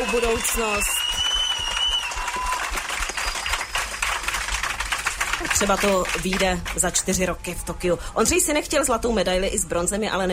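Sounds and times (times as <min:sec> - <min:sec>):
audience applause: 0:00.0 - 0:06.8
speech: 0:00.1 - 0:01.0, 0:05.4 - 0:10.3.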